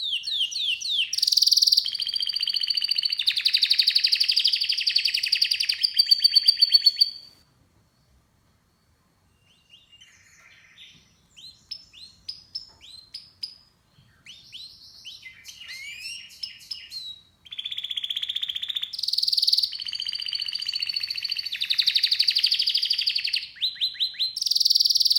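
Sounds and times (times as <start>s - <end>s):
canary song with rapid rolling trills and slurred notes: 0.0s - 7.4s, 9.4s - 25.1s.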